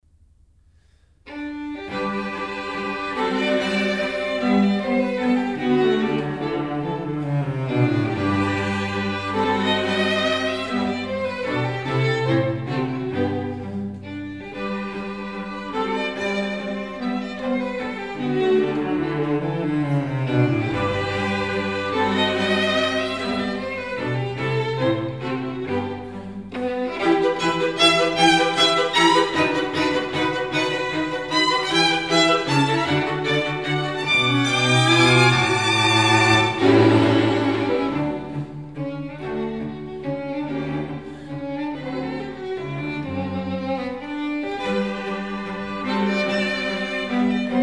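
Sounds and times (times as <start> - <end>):
string quartet in G: 1.2 - 47.6.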